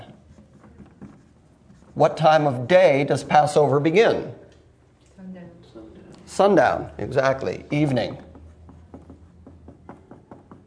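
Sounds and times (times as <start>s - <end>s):
pen strokes writing by hand: 0.0s - 2.3s, 7.8s - 10.6s
speech: 2.0s - 4.4s, 6.4s - 8.2s.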